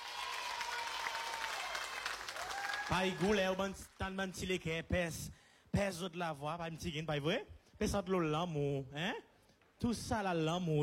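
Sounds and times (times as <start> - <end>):
audience applause: 0.0 - 3.7
speech: 2.9 - 10.8.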